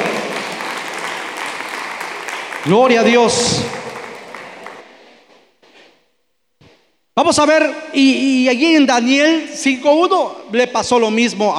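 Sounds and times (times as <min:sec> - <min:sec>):
audience applauding: 0:00.0 - 0:05.4
speech: 0:02.6 - 0:03.8, 0:07.2 - 0:11.5.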